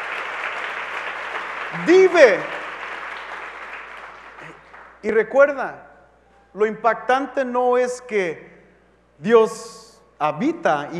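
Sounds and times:
audience applause: 0.0 - 5.0
speech: 1.7 - 2.6, 5.0 - 5.9, 6.6 - 8.5, 9.2 - 10.9.

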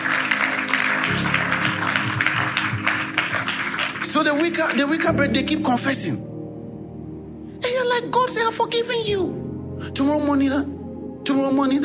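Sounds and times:
audience clapping: 0.0 - 5.4
speech: 4.2 - 6.3, 8.2 - 11.8.

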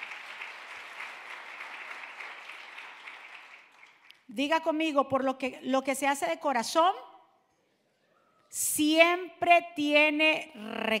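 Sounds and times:
loud applause: 0.0 - 4.2
speech: 4.3 - 7.1, 8.5 - 10.9.

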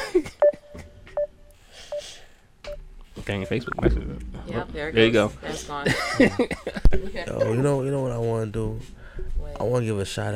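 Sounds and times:
speech: 0.1 - 0.4, 3.2 - 10.3
phone beeping after a dropped call: 0.4 - 4.0
laughter: 5.8 - 7.8.

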